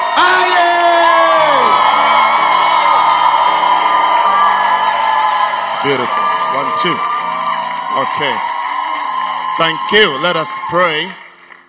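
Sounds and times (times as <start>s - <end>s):
audience cheering and whooping: 0.0s - 11.6s
clapping: 2.8s - 11.6s
speech: 6.8s - 7.1s, 8.0s - 8.5s, 9.6s - 11.2s.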